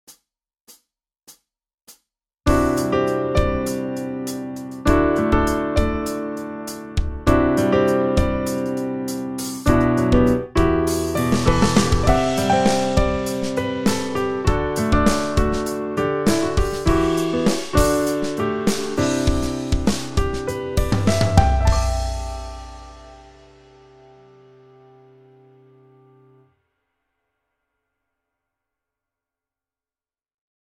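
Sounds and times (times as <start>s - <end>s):
studio grand piano: 2.5s - 26.5s.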